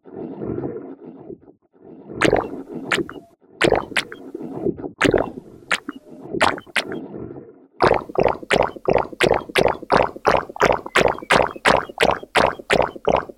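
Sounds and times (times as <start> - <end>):
toilet sounds: 2.2 - 4.2, 5.0 - 7.0, 7.8 - 13.3.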